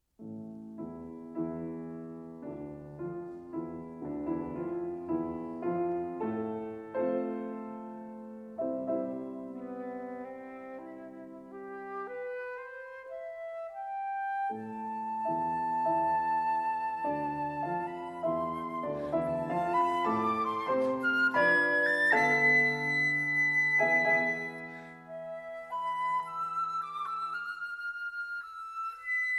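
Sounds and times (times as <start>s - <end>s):
flute and piano sonata allegro moderato: 0.2s - 29.3s.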